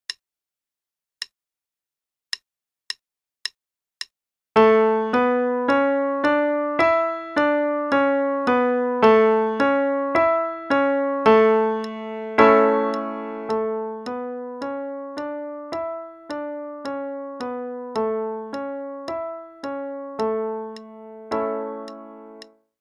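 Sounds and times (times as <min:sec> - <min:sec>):
A major five-note scale exercise: 0:04.6 - 0:22.5.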